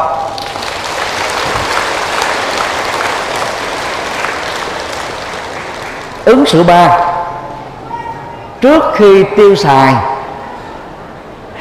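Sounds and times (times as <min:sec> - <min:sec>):
big round of applause: 0:00.0 - 0:06.7
speech: 0:06.3 - 0:07.1, 0:08.6 - 0:10.1.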